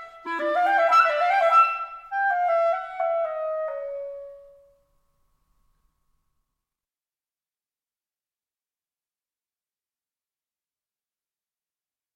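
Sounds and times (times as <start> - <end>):
solo clarinet: 0.0 - 4.8.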